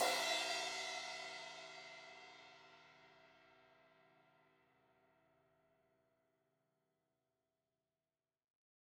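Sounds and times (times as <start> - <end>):
16-inch crash cymbal hit on the edge: 0.0 - 1.8.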